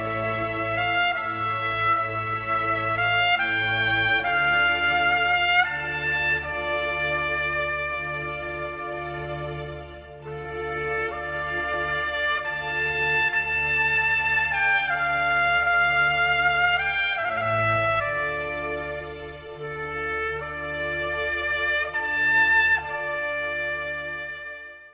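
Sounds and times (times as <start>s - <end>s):
slow classical piece arranged for trumpet and orchestra: 0.0s - 24.9s.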